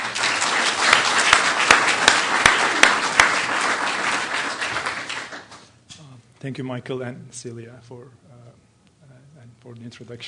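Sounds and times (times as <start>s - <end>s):
audience applause welcoming a speaker at a San Francisco event: 0.0s - 5.7s
speech: 6.4s - 8.6s, 9.6s - 10.2s.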